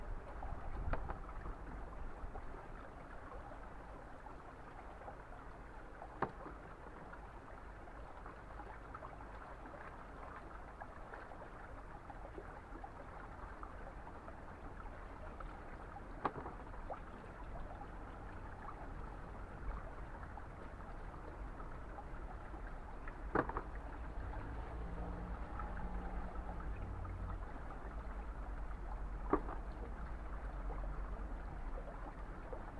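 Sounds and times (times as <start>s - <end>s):
spring water rushing and splashing while washing daikon radishes: 0.0s - 32.7s.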